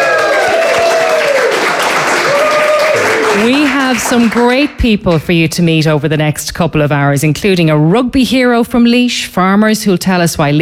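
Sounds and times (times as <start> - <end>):
live audience applauding at the Ballykilcavan Brewery in Laois, Ireland: 0.0 - 4.7
speech: 3.4 - 10.6.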